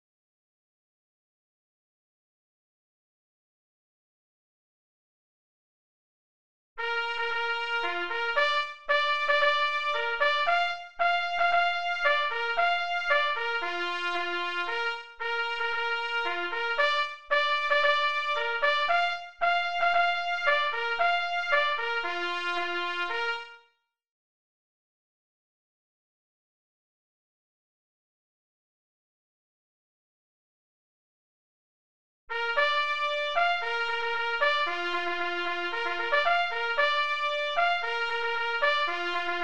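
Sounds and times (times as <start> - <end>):
signal horn at 114 bpm: 6.8 - 23.8, 32.3 - 39.4.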